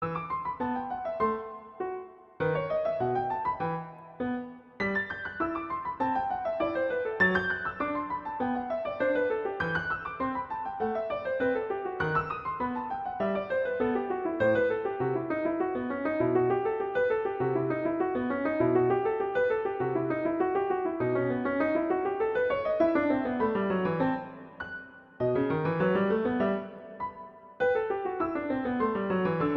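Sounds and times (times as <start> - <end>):
music exercise in E minor: 0.0 - 29.5.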